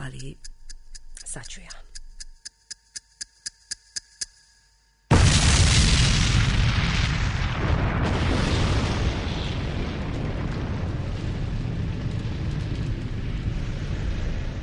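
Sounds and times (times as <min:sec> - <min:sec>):
rapid sharp evenly spaced ticks: 0:00.0 - 0:04.8
speech: 0:00.1 - 0:00.5, 0:01.3 - 0:01.9
massive loud explosion: 0:05.1 - 0:14.6.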